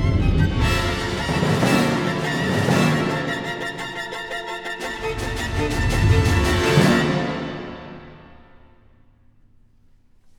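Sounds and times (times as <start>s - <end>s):
violin concerto allegro: 0.0s - 8.2s.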